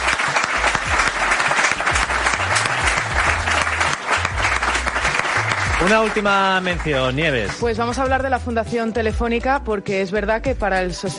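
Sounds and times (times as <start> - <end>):
audience applause: 0.0 - 7.7
speech: 5.8 - 11.1.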